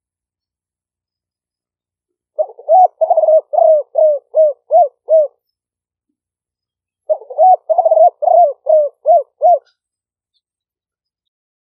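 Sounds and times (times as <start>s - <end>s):
spotted dove calling: 2.4s - 5.4s, 7.1s - 9.8s.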